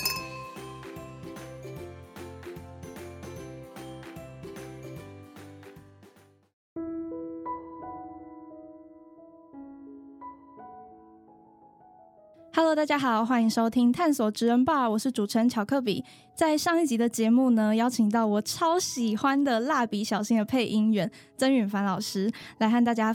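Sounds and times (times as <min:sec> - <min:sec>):
glasses clinking in a toast: 0:00.0 - 0:00.8
speech: 0:12.6 - 0:23.1.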